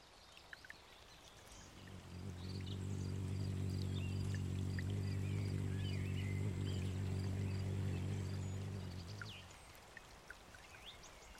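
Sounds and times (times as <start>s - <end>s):
faint birdsong: 0.2s - 9.8s
hummingbird wings humming: 1.6s - 9.7s.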